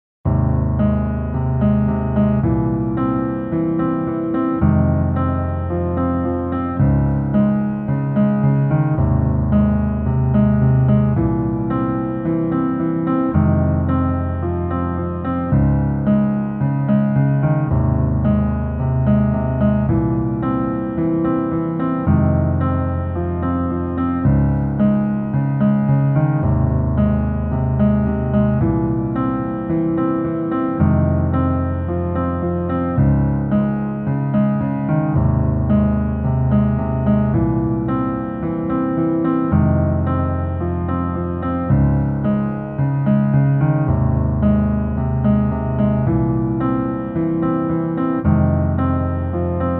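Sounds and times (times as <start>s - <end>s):
piano version in male key: 0.2s - 49.7s.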